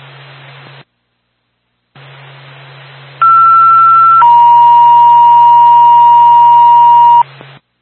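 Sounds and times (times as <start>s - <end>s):
two-tone ambulance dispatch pager alert: 3.2s - 7.2s.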